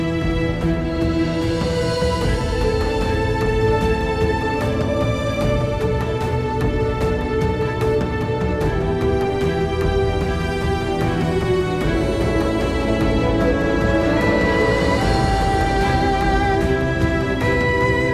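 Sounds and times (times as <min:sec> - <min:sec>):
erhu, traditional Chinese instrument, playing: 0:00.0 - 0:18.1.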